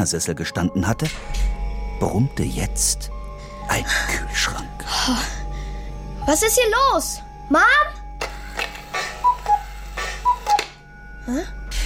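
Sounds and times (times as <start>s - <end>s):
speech: 0.0s - 1.4s, 2.0s - 5.4s, 6.3s - 8.0s, 11.3s - 11.6s
cuckoo clock ticking: 9.2s - 10.7s.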